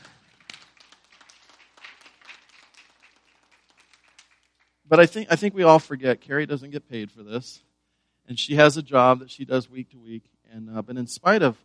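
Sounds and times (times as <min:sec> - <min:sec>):
audience clapping: 0:00.0 - 0:05.2
speech: 0:04.9 - 0:07.7, 0:08.3 - 0:11.6.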